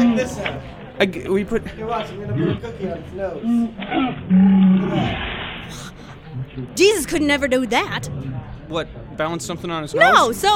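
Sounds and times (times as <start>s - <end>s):
speech: 0.2s - 6.0s, 6.6s - 10.5s
sea lion roaring: 2.2s - 5.4s.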